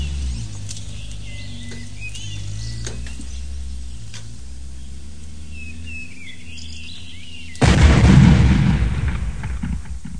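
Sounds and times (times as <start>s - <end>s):
car exploding: 7.6s - 10.1s.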